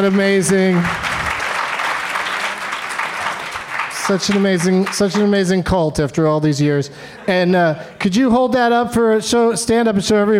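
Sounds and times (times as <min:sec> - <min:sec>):
speech: 0:00.0 - 0:01.1, 0:04.1 - 0:10.3
audience applause: 0:00.0 - 0:05.4.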